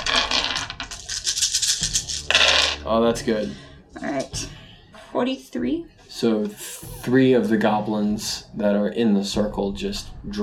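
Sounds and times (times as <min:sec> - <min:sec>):
many dice being rolled: 0:00.0 - 0:02.8
speech: 0:02.9 - 0:10.4.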